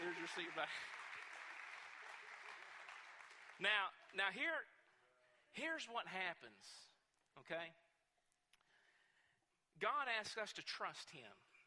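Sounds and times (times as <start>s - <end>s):
audience applause at a church service: 0.0s - 3.9s
speech: 0.3s - 1.0s, 3.6s - 4.7s, 5.5s - 7.8s, 9.8s - 11.5s.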